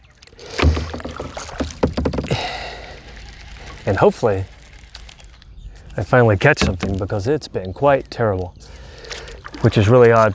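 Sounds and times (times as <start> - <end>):
rattly clatter: 0.0 - 7.3
thumps on kayak hull: 0.4 - 2.4, 6.4 - 7.3
speech: 3.9 - 4.5, 6.0 - 8.8, 9.6 - 10.3.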